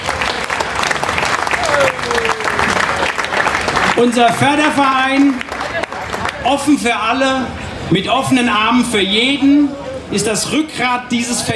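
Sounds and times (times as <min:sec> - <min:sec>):
festival crowd applause: 0:00.0 - 0:06.5
speech: 0:04.0 - 0:05.5, 0:06.4 - 0:11.5.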